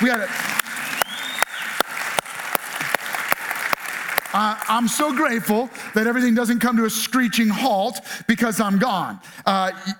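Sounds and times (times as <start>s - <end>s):
speech: 0.0s - 0.5s, 4.4s - 9.9s
audience applauding: 0.0s - 6.2s.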